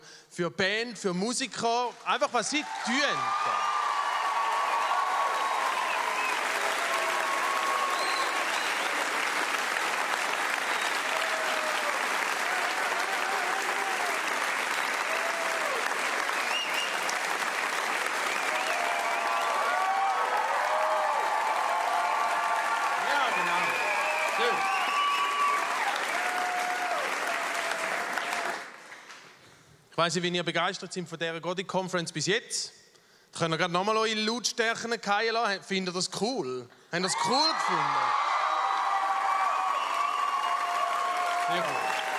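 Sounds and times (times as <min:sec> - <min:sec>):
speech: 0:00.4 - 0:03.8, 0:30.0 - 0:38.2, 0:41.5 - 0:41.8
audience applause: 0:02.4 - 0:29.2, 0:37.2 - 0:42.1
crowd whoops and shouts: 0:02.6 - 0:08.8, 0:10.9 - 0:14.3, 0:15.0 - 0:15.9, 0:18.5 - 0:28.5, 0:37.0 - 0:42.1.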